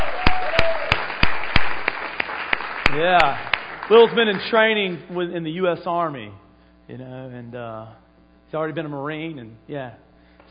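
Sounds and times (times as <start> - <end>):
applause welcoming a man home: 0.0 - 5.0
steady hiss: 0.0 - 10.4
speech: 3.0 - 10.0.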